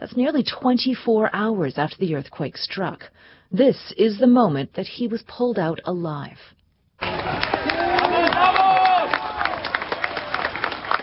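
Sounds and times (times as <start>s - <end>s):
speech: 0.0s - 7.6s
crowd cheering a rescue: 7.0s - 11.0s.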